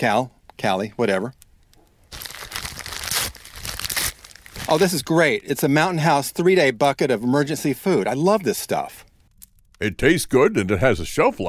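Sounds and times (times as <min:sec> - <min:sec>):
speech: 0:00.0 - 0:01.4, 0:04.7 - 0:09.0, 0:09.8 - 0:11.4
gift wrapping paper being torn open: 0:02.1 - 0:05.0.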